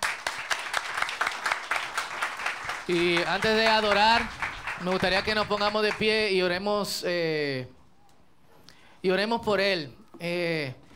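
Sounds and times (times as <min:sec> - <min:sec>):
audience applause: 0:00.0 - 0:06.3
speech: 0:02.9 - 0:07.8, 0:09.0 - 0:10.8.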